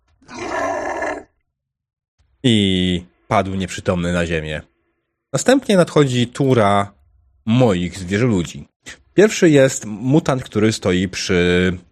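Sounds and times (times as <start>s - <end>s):
human voice imitating a chaos beast's roar: 0.2s - 1.3s
speech: 2.4s - 4.7s, 5.3s - 11.9s.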